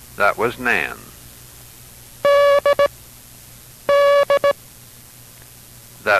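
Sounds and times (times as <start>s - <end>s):
speech: 0.2s - 1.1s
International Morse Code tones: 2.2s - 2.9s, 3.9s - 4.6s.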